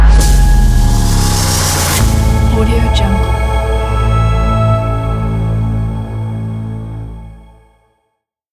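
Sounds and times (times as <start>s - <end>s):
electronic riser logo: 0.1s - 5.8s.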